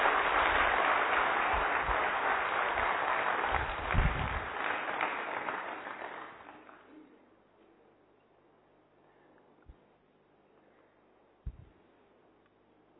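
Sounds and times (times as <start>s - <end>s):
audience applause: 0.0s - 6.9s.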